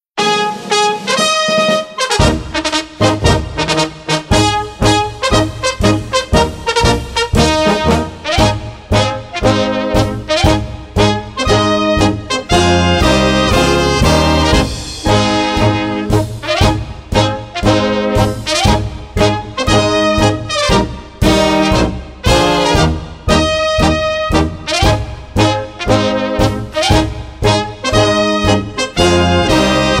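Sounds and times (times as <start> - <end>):
march music: 0.2 - 29.9.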